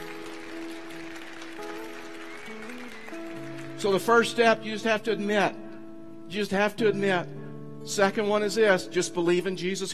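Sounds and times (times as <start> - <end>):
audience applause: 0.0 - 3.8
speech: 3.8 - 5.6, 6.3 - 9.9.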